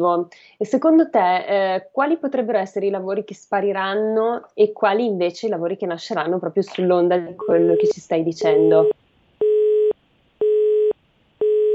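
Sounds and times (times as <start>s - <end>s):
speech: 0.0s - 9.0s
telephone busy tone after a dropped line: 7.4s - 11.7s.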